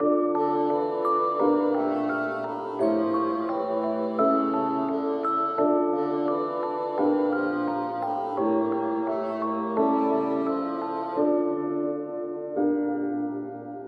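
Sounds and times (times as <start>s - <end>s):
melody: 0.0s - 13.7s.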